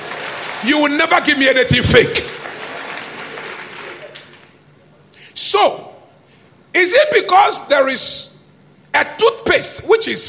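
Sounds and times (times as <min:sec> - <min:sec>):
crowd clapping: 0:00.0 - 0:04.6
speech: 0:00.6 - 0:02.3, 0:05.4 - 0:05.9, 0:06.8 - 0:08.3, 0:09.0 - 0:10.2.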